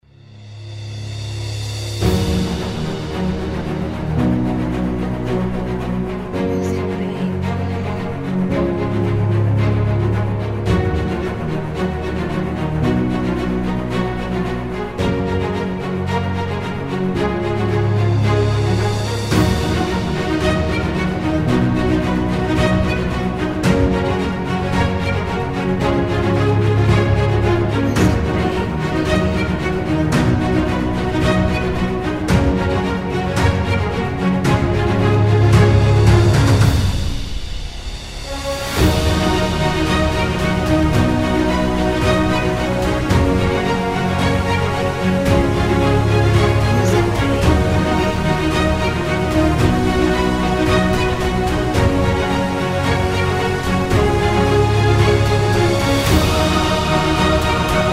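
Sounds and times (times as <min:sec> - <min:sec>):
epic cinematic opener music: 0:00.0 - 0:57.9.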